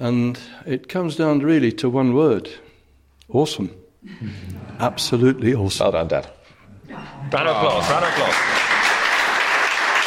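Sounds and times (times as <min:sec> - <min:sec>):
speech: 0:00.0 - 0:02.6, 0:03.3 - 0:08.6
audience applause: 0:07.6 - 0:10.0.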